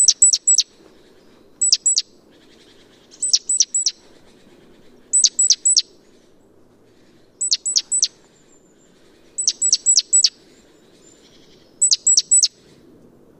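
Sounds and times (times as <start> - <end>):
great tit Parus major sharp very high downward calls: 0.0 - 0.6, 1.6 - 2.0, 3.1 - 4.0, 5.1 - 5.9, 7.4 - 8.1, 9.4 - 10.4, 11.2 - 12.5.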